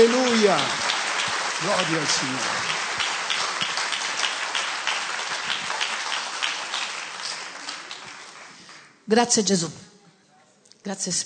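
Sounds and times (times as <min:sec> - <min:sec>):
speech: 0:00.0 - 0:00.8, 0:01.6 - 0:02.7, 0:09.1 - 0:09.9, 0:10.8 - 0:11.2
audience applause: 0:00.0 - 0:08.9.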